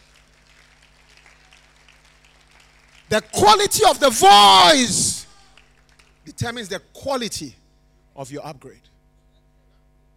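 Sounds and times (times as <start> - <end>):
audience clapping: 0.0 - 6.3
low steady hum: 3.0 - 10.1
speech: 3.1 - 5.1, 6.3 - 7.6, 8.2 - 8.9.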